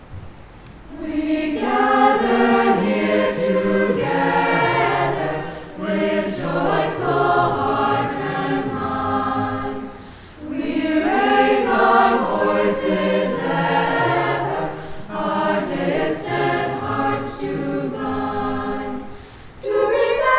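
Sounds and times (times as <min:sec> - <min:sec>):
chorus singing: 0:00.9 - 0:20.3.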